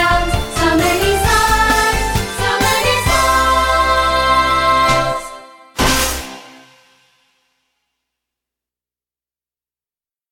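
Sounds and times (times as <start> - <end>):
vocals: 0.0 - 5.8.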